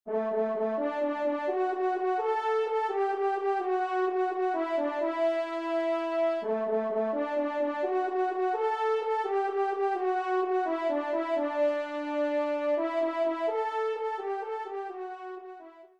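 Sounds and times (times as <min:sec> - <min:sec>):
horn: 0:00.1 - 0:15.9.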